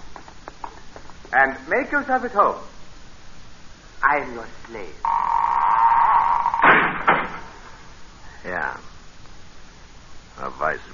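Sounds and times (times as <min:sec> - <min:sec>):
speech: 0:01.3 - 0:02.8, 0:04.0 - 0:05.2, 0:10.4 - 0:10.9
heavy iron door hinge creaking: 0:05.1 - 0:07.4
heavy iron door banging shut: 0:06.4 - 0:07.6.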